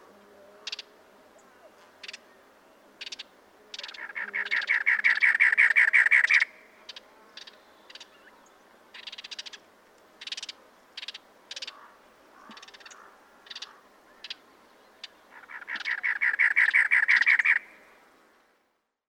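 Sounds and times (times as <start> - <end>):
cactus wren singing: 3.0 - 9.6, 10.2 - 17.9.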